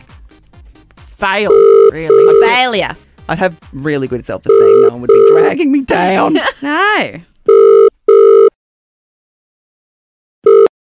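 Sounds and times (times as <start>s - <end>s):
speech: 1.2s - 7.3s
telephone call being dialed and ringing: 1.5s - 2.5s, 4.5s - 5.4s, 7.5s - 8.5s, 10.5s - 10.7s.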